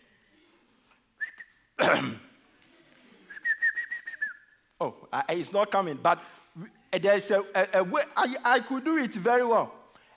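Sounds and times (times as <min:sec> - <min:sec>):
person clearing throat: 0:01.8 - 0:02.4
speech: 0:01.9 - 0:02.2, 0:04.8 - 0:09.8
person whistling a call for summoning chickens: 0:03.3 - 0:04.6.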